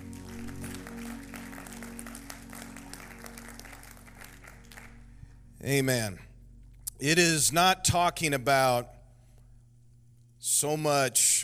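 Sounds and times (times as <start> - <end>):
audience clapping: 0.0 - 5.4
low hum: 0.0 - 10.7
speech: 5.6 - 6.3, 7.0 - 8.9, 10.4 - 11.4.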